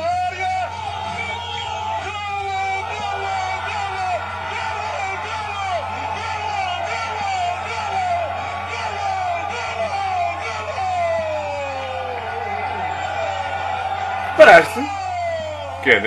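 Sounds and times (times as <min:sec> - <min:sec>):
large stadium crowd roaring and shouting a goal: 0:00.0 - 0:16.0
speech: 0:14.4 - 0:15.0, 0:15.8 - 0:16.0.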